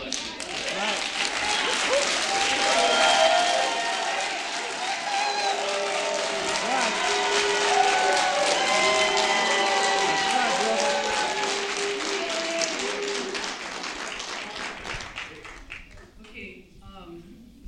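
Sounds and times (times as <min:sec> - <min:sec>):
shouts and voices: 0:00.0 - 0:13.5
audience applause: 0:00.0 - 0:16.2.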